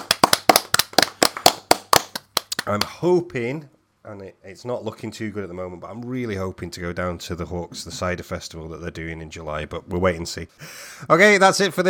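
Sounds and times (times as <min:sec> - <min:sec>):
round of applause: 0:00.0 - 0:02.8
speech: 0:02.7 - 0:11.8.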